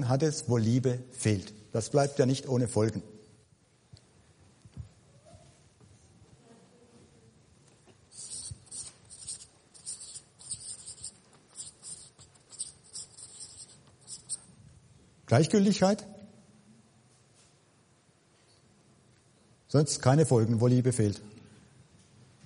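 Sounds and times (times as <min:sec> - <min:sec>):
speech: 0:00.0 - 0:03.2, 0:15.3 - 0:16.2, 0:19.7 - 0:21.4
pen scratching on paper writing handwritten notes: 0:08.1 - 0:14.5.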